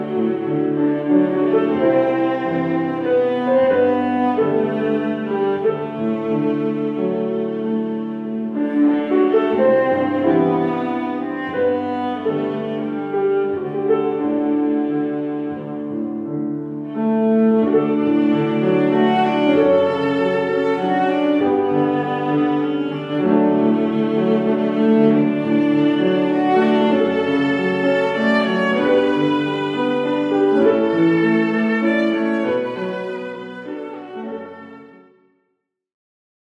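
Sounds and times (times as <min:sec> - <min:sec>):
viola playing: 0:00.0 - 0:35.2.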